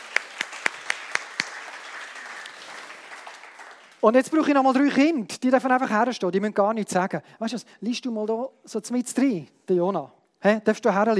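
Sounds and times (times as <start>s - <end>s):
hand claps: 0.0s - 4.0s
speech: 4.0s - 11.1s.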